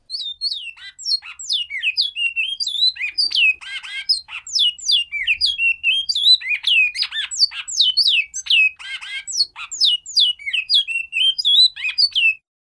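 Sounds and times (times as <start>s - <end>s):
bicudo singing: 0.0s - 12.4s.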